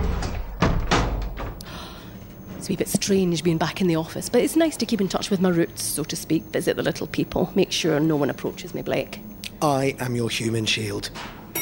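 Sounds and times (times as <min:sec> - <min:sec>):
low rumble: 0:00.0 - 0:01.6
door closing: 0:00.0 - 0:02.7
speech: 0:02.6 - 0:11.4.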